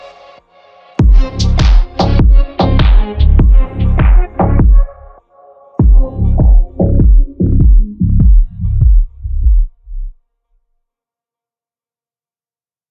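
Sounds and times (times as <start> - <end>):
rumba music: 1.0 - 5.2, 5.8 - 9.3.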